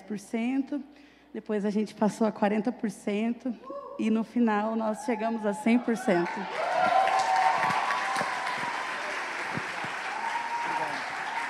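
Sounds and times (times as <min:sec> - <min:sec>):
speech: 0:00.1 - 0:06.8
large crowd applauding: 0:06.0 - 0:11.4.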